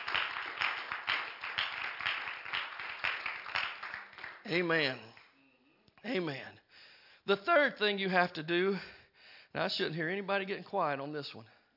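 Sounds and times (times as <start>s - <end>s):
audience clapping hands: 0.0s - 5.4s
speech: 4.5s - 5.1s, 6.0s - 6.6s, 7.2s - 11.6s.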